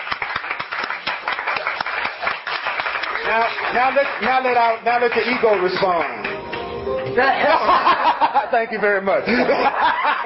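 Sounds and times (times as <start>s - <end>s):
audience clapping: 0.0s - 6.8s
speech: 3.3s - 10.2s
laughter: 7.1s - 10.2s.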